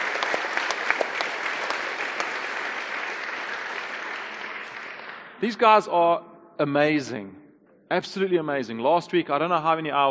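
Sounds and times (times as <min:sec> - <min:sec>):
audience applause: 0:00.0 - 0:05.5
speech: 0:05.4 - 0:10.1.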